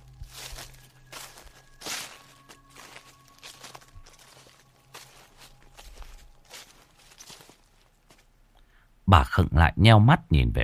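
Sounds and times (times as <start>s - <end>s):
rustling in bushes: 0.0s - 8.4s
speech: 9.1s - 10.6s.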